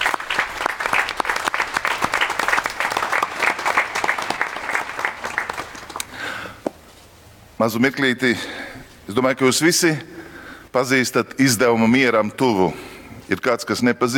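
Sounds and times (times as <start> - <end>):
church congregation applauding people who received confirmation: 0.0 - 6.4
speech: 7.6 - 14.1.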